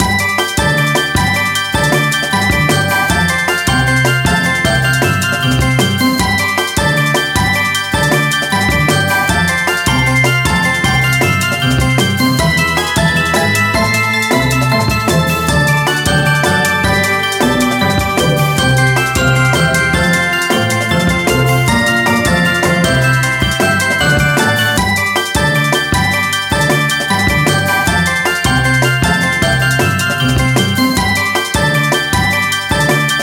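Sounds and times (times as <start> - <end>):
reveal music: 0.0 - 33.2.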